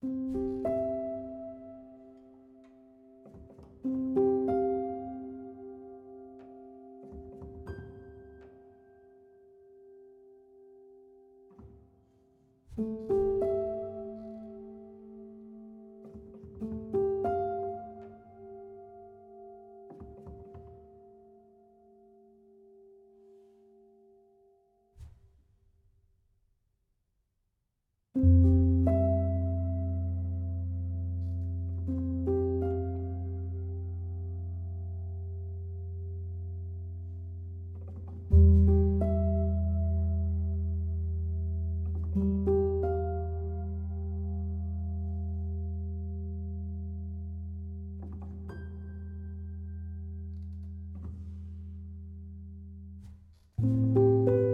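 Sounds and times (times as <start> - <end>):
low-key music in C major at 94 BPM: 0.0 - 24.5, 28.2 - 54.5.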